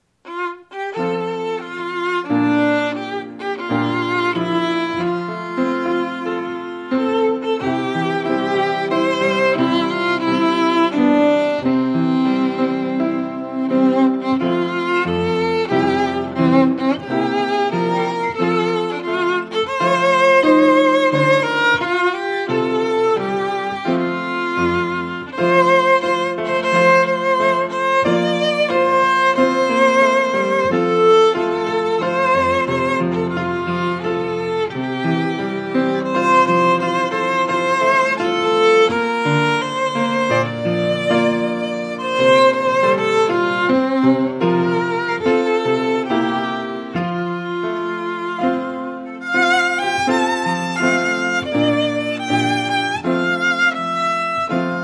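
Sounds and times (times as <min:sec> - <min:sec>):
violin: 0:00.0 - 0:54.8.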